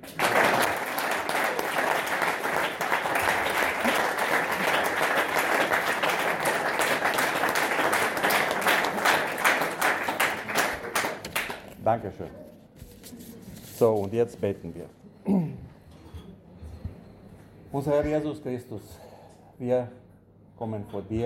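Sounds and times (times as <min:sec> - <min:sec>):
audience clapping loudly: 0:00.0 - 0:11.9
speech: 0:11.9 - 0:12.5, 0:13.8 - 0:15.5, 0:17.7 - 0:19.0, 0:19.6 - 0:20.0, 0:20.6 - 0:21.2.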